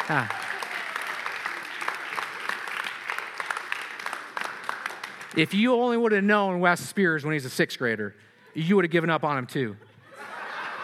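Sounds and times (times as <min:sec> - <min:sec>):
audience clapping: 0:00.0 - 0:06.2
speech: 0:00.1 - 0:00.4, 0:05.3 - 0:09.9
laughter: 0:09.6 - 0:10.8.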